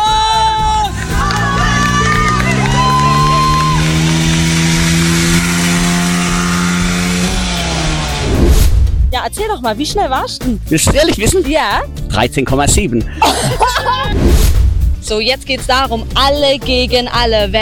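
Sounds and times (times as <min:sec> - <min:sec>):
small moped engine accelerating: 0:00.0 - 0:09.2
speech: 0:09.3 - 0:13.6, 0:14.2 - 0:17.5
laughter: 0:13.0 - 0:14.2.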